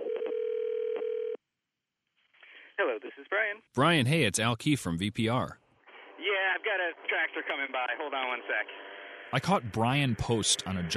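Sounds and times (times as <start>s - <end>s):
telephone tone: 0.0s - 1.4s
speech: 2.8s - 5.6s, 6.5s - 10.9s.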